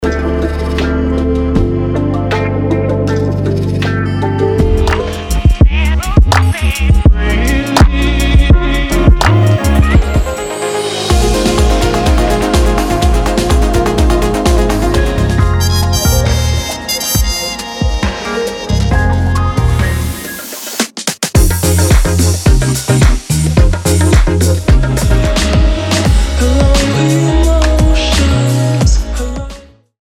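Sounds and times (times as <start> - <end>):
lounge music: 0.0 - 29.7.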